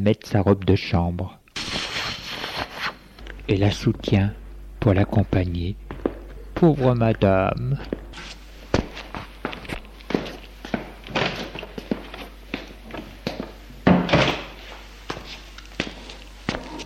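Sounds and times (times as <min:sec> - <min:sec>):
speech: 0:00.0 - 0:01.4, 0:03.5 - 0:05.8, 0:06.6 - 0:08.0
footsteps leaving a bedroom and going down stairs: 0:04.8 - 0:16.8.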